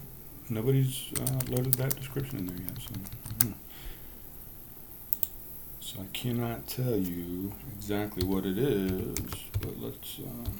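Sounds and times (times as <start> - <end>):
speech: 0.5 - 4.0, 5.9 - 10.5
typing on a computer keyboard: 1.2 - 3.6, 8.2 - 9.8, 10.4 - 10.5.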